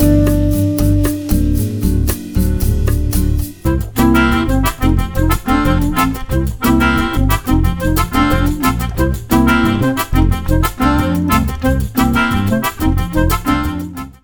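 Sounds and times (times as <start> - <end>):
bossa nova grooves: 0.0 - 14.2.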